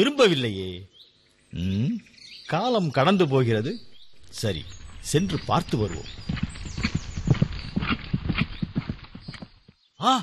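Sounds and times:
speech: 0.0 - 0.9, 1.5 - 6.5, 10.0 - 10.2
horse hooves clip-clopping: 4.7 - 9.8.

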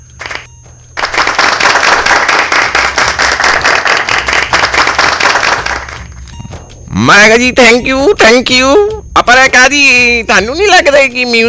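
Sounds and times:
loud audience applause welcoming a radio host: 1.0 - 6.1
speech: 7.0 - 11.4.

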